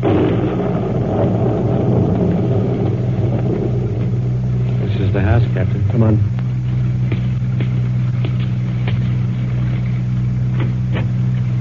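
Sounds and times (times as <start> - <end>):
heavy thunder rumbling during a storm: 0.0 - 11.5
speech: 6.0 - 6.3.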